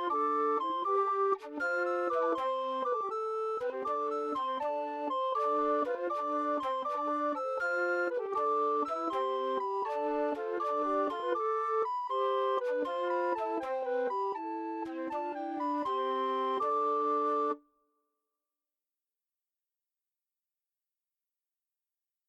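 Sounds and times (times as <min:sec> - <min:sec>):
flutes: 0:00.0 - 0:17.6.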